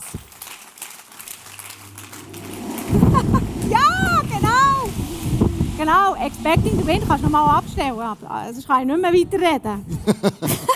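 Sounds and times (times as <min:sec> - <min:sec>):
audience applause: 0:00.0 - 0:05.6
speech: 0:02.9 - 0:03.9, 0:05.8 - 0:10.7
laughter: 0:02.9 - 0:04.2, 0:09.9 - 0:10.7.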